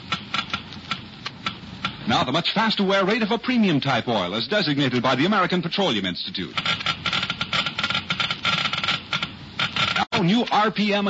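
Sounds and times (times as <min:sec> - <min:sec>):
Geiger counter clicking: 0:00.0 - 0:02.1, 0:06.5 - 0:10.1
speech: 0:02.1 - 0:06.8, 0:10.2 - 0:11.0.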